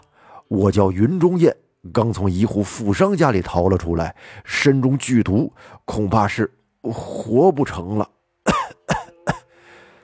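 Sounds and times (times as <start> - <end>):
speech: 0.5 - 8.2
person coughing: 8.4 - 9.5.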